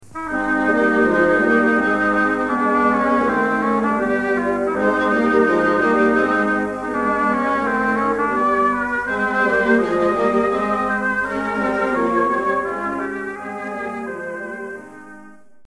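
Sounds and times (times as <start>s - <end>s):
oboe: 0.0s - 15.6s.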